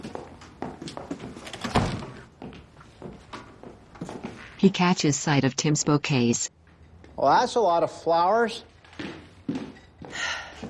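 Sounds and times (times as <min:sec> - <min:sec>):
footsteps of a man stepping inside a house: 0:00.0 - 0:04.7, 0:08.7 - 0:10.6
speech: 0:04.6 - 0:06.5, 0:07.2 - 0:08.7.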